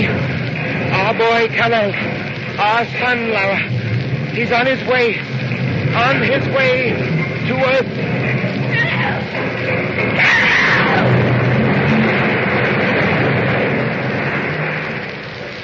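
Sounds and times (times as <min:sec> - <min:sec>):
planet exploding: 0:00.0 - 0:15.6
speech: 0:01.1 - 0:05.4, 0:06.0 - 0:08.2
shrill wailing tones: 0:08.6 - 0:09.4, 0:10.1 - 0:11.5.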